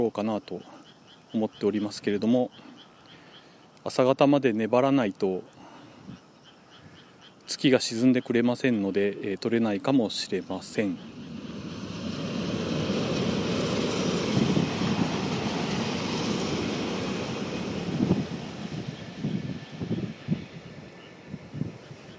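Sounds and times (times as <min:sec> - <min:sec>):
speech: 0:00.0 - 0:02.7, 0:03.8 - 0:06.2, 0:07.5 - 0:11.2
Shinkansen bullet train passing on the viaduct overhead: 0:09.8 - 0:22.1.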